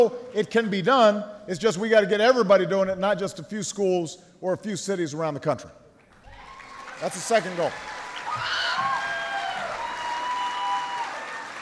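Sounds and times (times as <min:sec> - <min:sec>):
speech: 0:00.0 - 0:05.8, 0:07.0 - 0:08.6
crowd applause: 0:06.1 - 0:11.6
high excited scream and shrill whoops: 0:06.2 - 0:07.0, 0:07.9 - 0:11.6.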